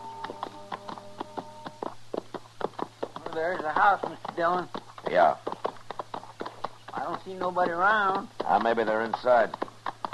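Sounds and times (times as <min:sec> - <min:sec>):
faint low hum: 0:00.0 - 0:03.2
horses' hooves clip-clopping as two riders approach a ranch: 0:00.0 - 0:10.1
speech: 0:03.4 - 0:05.5, 0:07.1 - 0:09.6.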